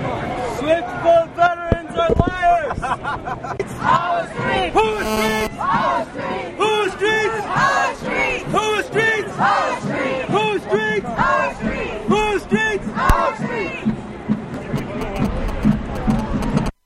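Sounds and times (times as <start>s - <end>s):
crowd sounds in New York City: 0.0s - 16.7s
laughter: 2.6s - 3.8s.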